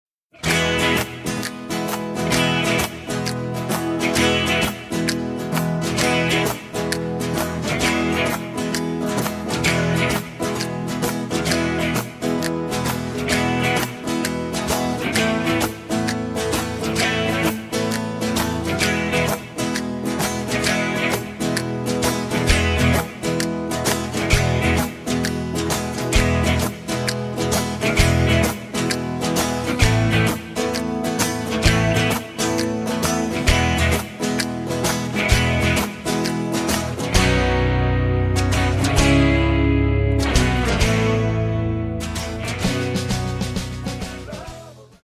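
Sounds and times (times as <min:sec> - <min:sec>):
backing track in E without guitar solo: 0:00.3 - 0:45.0.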